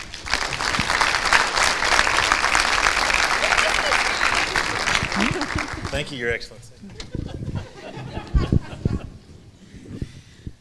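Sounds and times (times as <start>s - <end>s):
audience applause welcoming a speaker: 0.0s - 6.5s
laughter: 1.3s - 9.3s
speech: 6.0s - 7.0s.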